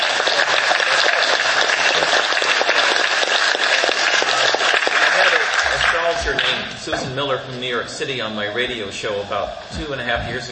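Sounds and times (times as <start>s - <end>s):
dense clapping: 0.0s - 6.7s
speech: 6.8s - 10.5s.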